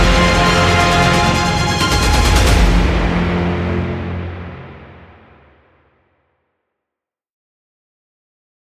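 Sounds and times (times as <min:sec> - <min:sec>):
epic instrumental music: 0:00.0 - 0:06.1.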